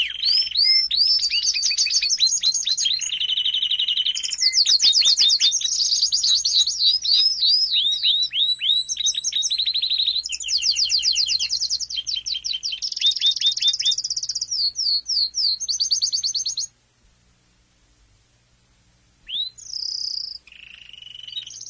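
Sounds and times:
domestic canary singing chirps, trills and buzzy tours: 0.0s - 16.7s, 19.2s - 21.6s.

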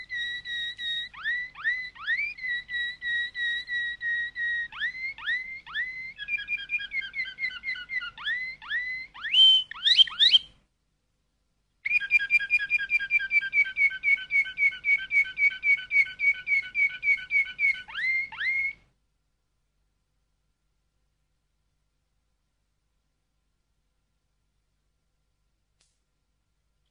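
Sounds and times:
canary singing: 0.0s - 10.6s, 11.8s - 18.9s.

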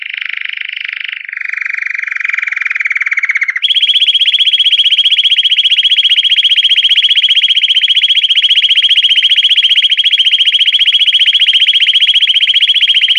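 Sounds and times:
canary song with whistled notes and rapid rolling trill: 0.0s - 13.1s.

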